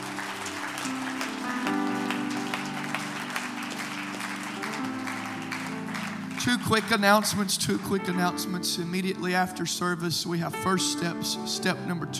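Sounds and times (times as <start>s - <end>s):
audience clapping hands: 0.0s - 8.6s
speech: 6.4s - 12.1s.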